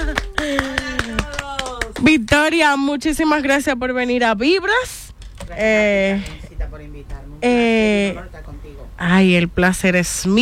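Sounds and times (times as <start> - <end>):
crowd applause: 0.0 - 2.1
speech: 2.4 - 10.4.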